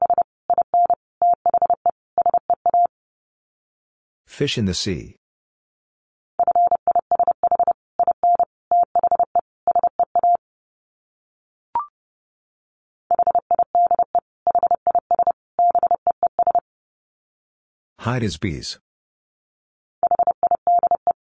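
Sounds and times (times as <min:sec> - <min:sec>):
Morse code beeps at 30 words per minute: 0:00.0 - 0:02.9, 0:06.4 - 0:10.4, 0:13.1 - 0:16.6, 0:20.0 - 0:21.2
speech: 0:04.4 - 0:05.2, 0:18.1 - 0:18.8.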